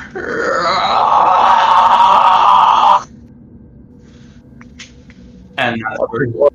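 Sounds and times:
person voicing a monster's screech: 0:00.0 - 0:03.1
speech: 0:06.1 - 0:06.5.

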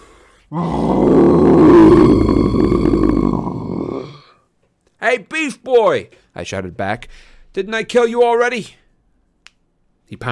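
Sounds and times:
speech: 0:00.5 - 0:01.2, 0:06.4 - 0:08.8, 0:10.1 - 0:10.3
monster bellowing: 0:00.5 - 0:04.3.

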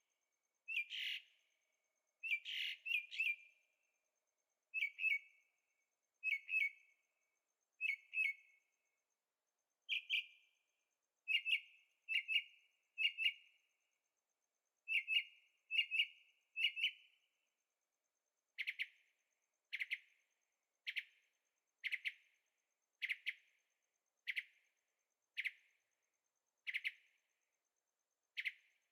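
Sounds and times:
bird chirping at night in Carefree Arizona: 0:00.6 - 0:01.6, 0:02.2 - 0:03.8, 0:04.7 - 0:05.6, 0:06.2 - 0:07.1, 0:07.8 - 0:08.7, 0:09.8 - 0:10.6, 0:11.2 - 0:13.7, 0:14.8 - 0:17.2, 0:18.6 - 0:19.1, 0:19.7 - 0:20.2, 0:20.8 - 0:22.4, 0:23.0 - 0:23.6, 0:24.2 - 0:24.7, 0:25.4 - 0:25.8, 0:26.6 - 0:27.2, 0:28.3 - 0:28.9.

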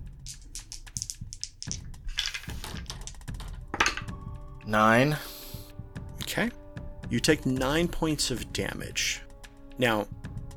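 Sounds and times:
two six-sided dice rattling and tumbling across a hard surface: 0:00.2 - 0:04.0
speech: 0:04.7 - 0:05.3, 0:06.4 - 0:09.2, 0:09.8 - 0:10.2.

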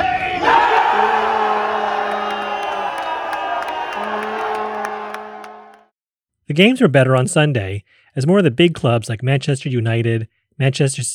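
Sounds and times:
Tottenham Hotspur fans roaring during the Tottenham Hotspur versus Everton match: 0:00.2 - 0:05.8
speech: 0:06.5 - 0:11.1.

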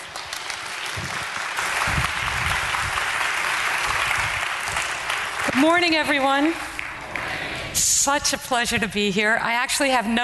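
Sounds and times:
audience applause greeting a woman guest speaker at a morning gathering: 0:00.0 - 0:07.6
speech: 0:05.6 - 0:06.7, 0:07.8 - 0:10.2.

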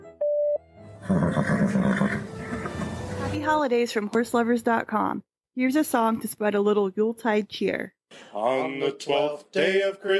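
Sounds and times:
voicemail beep: 0:00.2 - 0:00.6
speech: 0:01.1 - 0:02.5, 0:03.3 - 0:10.1.

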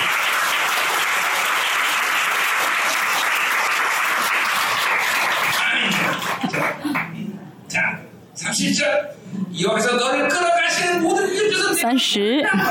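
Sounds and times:
audience applause: 0:00.0 - 0:07.2
speech: 0:08.6 - 0:12.6.

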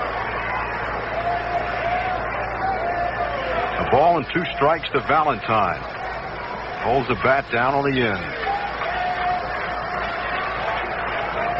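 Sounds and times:
baseball fans clapping: 0:00.0 - 0:11.5
speech: 0:03.9 - 0:06.0, 0:06.8 - 0:08.5.

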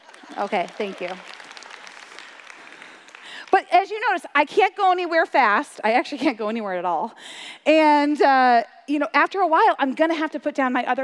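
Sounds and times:
audience applause: 0:00.0 - 0:03.6
speech: 0:00.3 - 0:01.3, 0:03.9 - 0:11.0.

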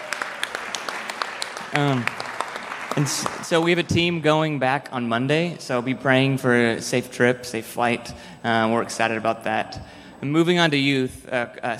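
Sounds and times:
audience clapping: 0:00.0 - 0:04.1
speech: 0:01.8 - 0:02.2, 0:02.9 - 0:11.7.

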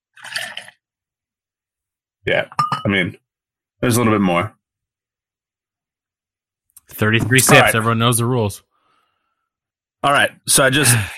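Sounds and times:
beer pouring into a glass: 0:00.1 - 0:00.8
speech: 0:02.2 - 0:03.2, 0:03.8 - 0:04.6, 0:06.9 - 0:08.7, 0:10.0 - 0:11.1.

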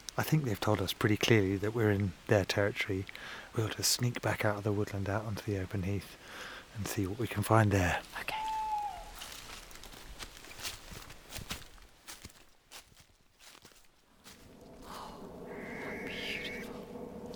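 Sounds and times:
speech: 0:00.2 - 0:08.4
barn owl screech call: 0:08.3 - 0:09.3, 0:15.2 - 0:17.0.

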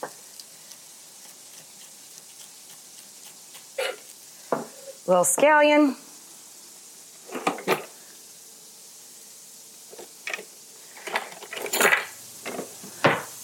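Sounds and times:
speech: 0:05.1 - 0:06.1
utensils clattering in a jammed kitchen drawer: 0:11.0 - 0:12.6.

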